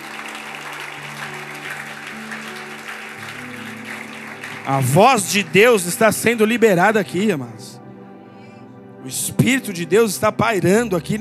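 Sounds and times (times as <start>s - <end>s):
audience applause: 0.0s - 6.6s
speech: 4.7s - 7.7s, 9.1s - 11.1s.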